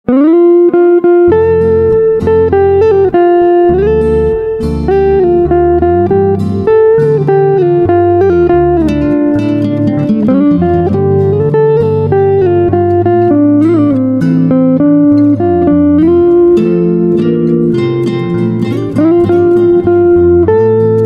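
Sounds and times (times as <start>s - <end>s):
guitar: 0.0s - 21.0s.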